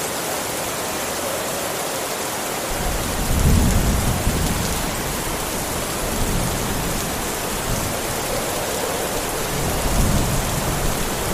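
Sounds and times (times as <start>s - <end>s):
steady dense rain in a forest thunderstorm: 0.0s - 11.3s
low thunder rumbling in a remote forest: 2.7s - 11.3s.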